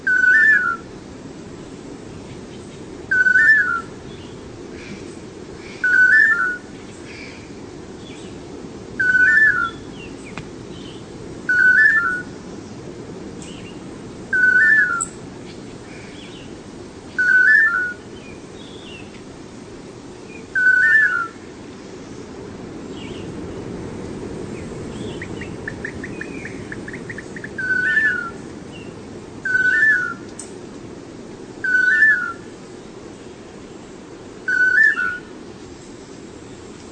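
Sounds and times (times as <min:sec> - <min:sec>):
unidentified pair of birds calling: 0:02.5 - 0:08.4, 0:09.0 - 0:12.3, 0:13.4 - 0:19.2, 0:20.2 - 0:21.4, 0:24.6 - 0:30.5, 0:31.6 - 0:32.5, 0:34.5 - 0:35.3.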